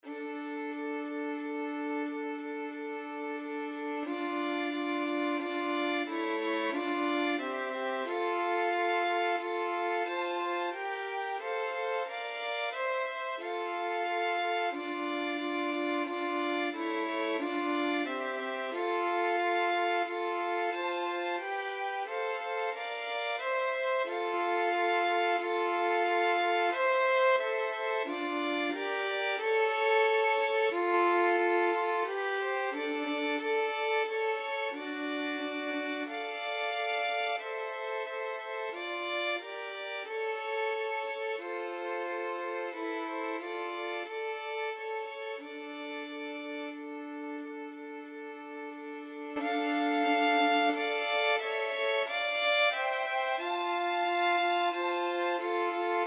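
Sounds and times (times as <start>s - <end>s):
violin trio playing a pavane: 0.0s - 56.0s.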